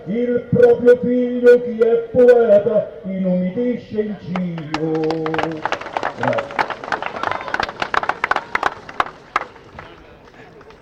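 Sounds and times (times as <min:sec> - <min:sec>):
speech: 0:00.0 - 0:06.5
audience applause: 0:04.6 - 0:10.7.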